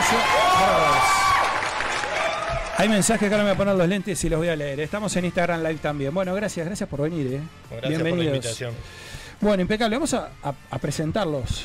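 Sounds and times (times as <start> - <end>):
studio audience applause and cheering: 0.0 - 3.9
speech: 0.1 - 0.7, 2.8 - 11.6.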